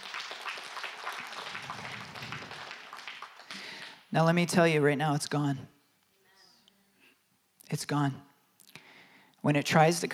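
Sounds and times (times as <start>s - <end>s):
audience clapping hands: 0.0s - 4.1s
speech: 4.1s - 5.7s, 7.8s - 8.3s, 9.4s - 10.1s.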